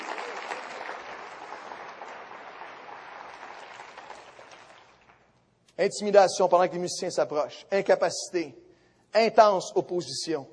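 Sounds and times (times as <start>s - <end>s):
audience applauding: 0.0s - 5.2s
speech: 5.8s - 8.6s, 9.2s - 10.5s.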